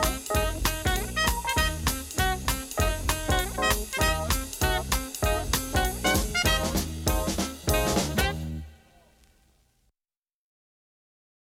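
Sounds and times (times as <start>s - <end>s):
bebop music: 0.0s - 9.2s.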